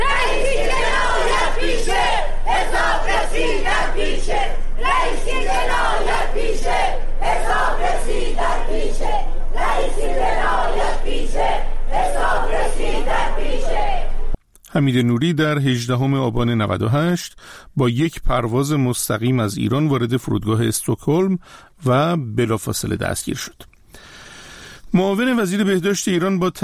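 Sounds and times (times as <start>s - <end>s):
protest crowd chanting slogans: 0.0s - 14.4s
speech: 14.8s - 23.7s, 24.9s - 26.6s.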